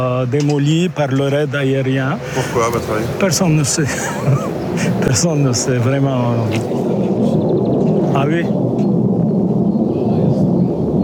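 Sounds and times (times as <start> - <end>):
speech: 0.0 - 7.1, 8.2 - 8.8
airplane passing overhead: 1.4 - 11.0
laughter: 2.2 - 5.8.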